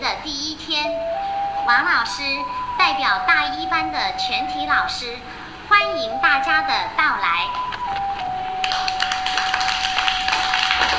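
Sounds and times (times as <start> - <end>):
faint steady hum: 0.0 - 10.9
speech: 1.7 - 7.8
group of children clapping: 7.6 - 10.9.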